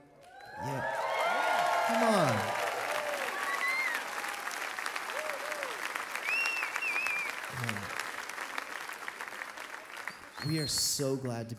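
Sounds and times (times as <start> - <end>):
church congregation clapping at a praise night: 0.0 - 11.5
sharp whistles: 6.2 - 7.4, 10.1 - 10.9
speech: 10.5 - 11.5.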